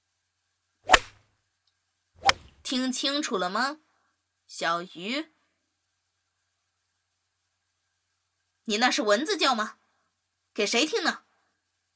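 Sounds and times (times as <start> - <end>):
teacher's pointer whipping through the air: 0.9 - 1.2, 2.2 - 2.7
speech: 2.7 - 3.8, 4.5 - 5.4, 8.7 - 9.8, 10.6 - 11.2.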